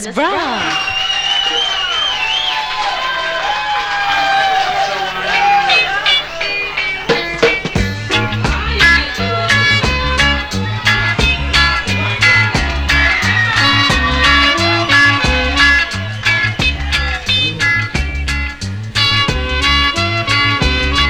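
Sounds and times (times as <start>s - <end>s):
laughter: 0.0s - 21.0s
loud crowd cheering and clapping with whoops and voices: 0.0s - 21.0s
bass-heavy band playing: 4.7s - 21.0s.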